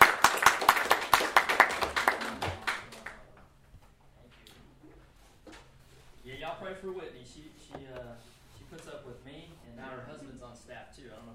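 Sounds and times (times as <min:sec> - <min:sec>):
audience applause: 0:00.0 - 0:03.2
speech: 0:06.7 - 0:11.3.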